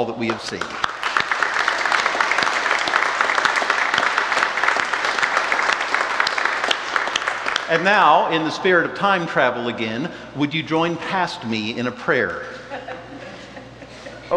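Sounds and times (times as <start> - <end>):
speech: 0.0 - 0.8, 7.7 - 12.6
audience hand clap applause: 0.0 - 8.8
laughter: 12.2 - 14.3.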